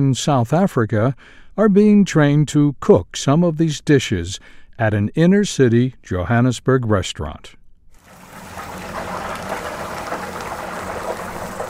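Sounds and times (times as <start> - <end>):
speech: 0.0 - 7.6
chicken coated in spiced batter sizzling in oil: 8.0 - 11.6.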